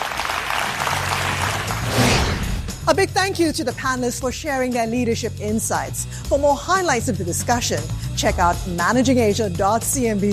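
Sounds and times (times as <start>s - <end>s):
audience applause: 0.0s - 2.0s
speech: 2.9s - 10.3s.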